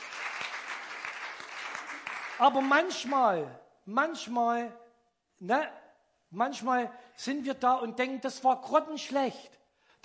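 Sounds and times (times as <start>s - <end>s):
applause: 0.0s - 3.5s
speech: 2.4s - 4.8s, 5.4s - 10.0s.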